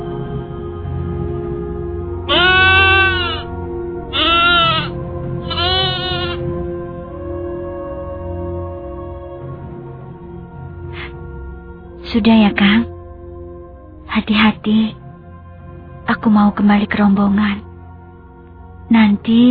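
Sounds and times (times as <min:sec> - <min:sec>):
goat bleating: 0:02.3 - 0:03.5, 0:04.2 - 0:06.4
speech: 0:12.1 - 0:12.9, 0:14.2 - 0:15.0, 0:16.1 - 0:17.7, 0:18.9 - 0:19.5.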